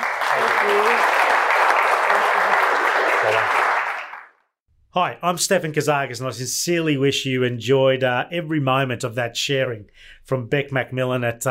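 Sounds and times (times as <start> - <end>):
audience round of applause: 0.0 - 4.4
speech: 0.6 - 1.2, 5.0 - 11.5.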